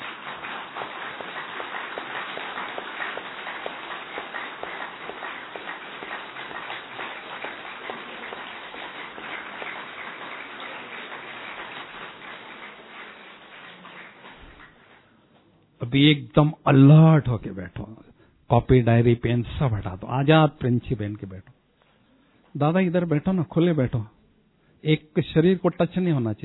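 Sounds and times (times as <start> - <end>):
group of people clapping hands: 0.0 - 15.2
speech: 15.9 - 21.6, 22.6 - 24.2, 24.8 - 26.4.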